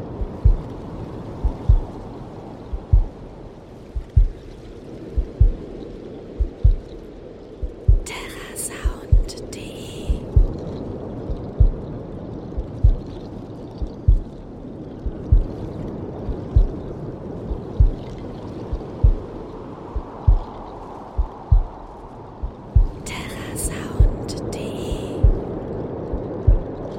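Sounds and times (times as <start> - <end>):
waves: 0.0 - 26.9
heartbeat: 0.2 - 0.8, 1.4 - 2.1, 2.7 - 3.3, 3.9 - 5.7, 6.4 - 7.0, 7.6 - 9.4, 10.0 - 10.7, 11.3 - 12.0, 12.6 - 13.2, 13.8 - 14.4, 15.0 - 15.6, 16.2 - 19.4, 20.0 - 20.6, 21.2 - 24.3, 24.9 - 25.5, 26.1 - 26.9.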